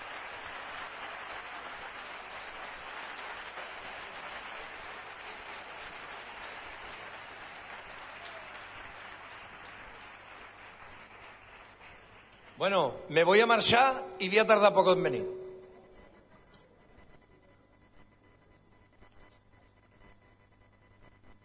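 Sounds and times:
many hands clapping for a companion: 0.0 - 13.4
speech: 12.6 - 15.4.

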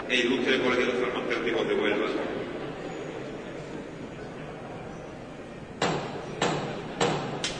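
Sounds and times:
speech: 0.1 - 2.4
low steady crowd murmur: 2.1 - 7.0
procession float hammer knocks: 5.8 - 7.5.

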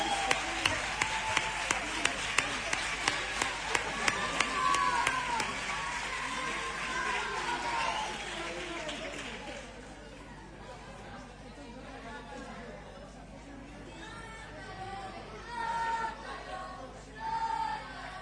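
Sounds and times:
rhythmic audience clapping: 0.0 - 10.1
murmur of voices: 0.0 - 18.2.

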